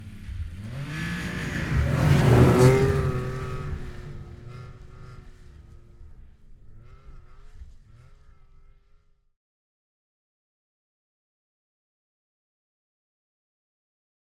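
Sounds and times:
2006 Yamaha RS Venture snowmobile passing fast, recorded in ORTF stereo: 0.0 - 9.2.

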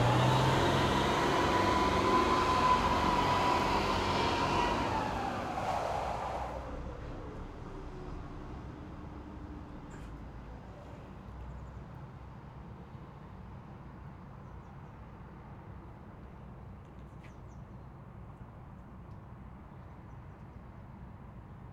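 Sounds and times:
distant Renault VAB armoured personnel carrier driving fast forward and reverse outdoors: 0.0 - 11.4.

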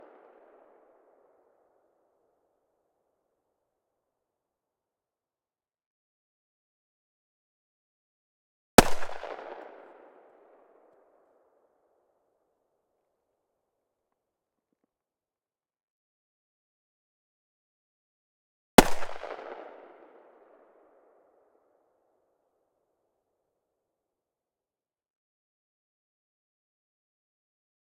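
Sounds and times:
Desert Eagle pistol firing: 8.8 - 10.1, 18.8 - 19.8.

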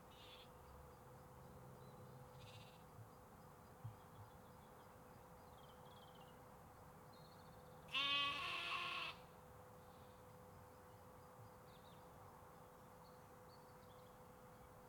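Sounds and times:
sheep and lambs bleating in the UK: 7.9 - 9.2.

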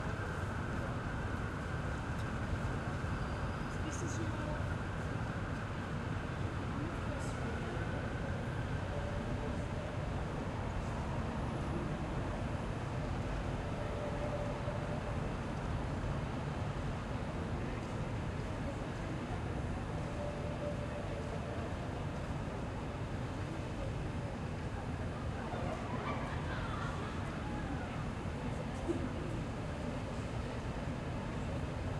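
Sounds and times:
city ambience in Manchester: 0.0 - 31.9.

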